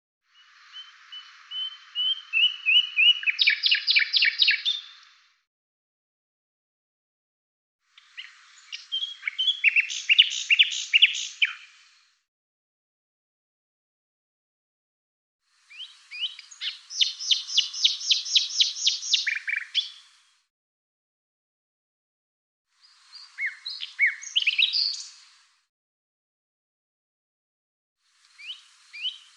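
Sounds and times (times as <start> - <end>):
bird chirps and high thin whistles: 0.8 - 5.0, 8.2 - 11.7, 15.8 - 20.0, 23.4 - 25.1, 28.4 - 29.3.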